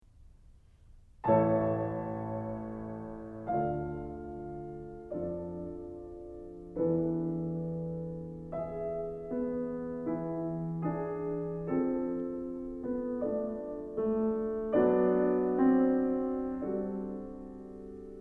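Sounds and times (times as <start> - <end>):
piano: 0.0 - 18.1.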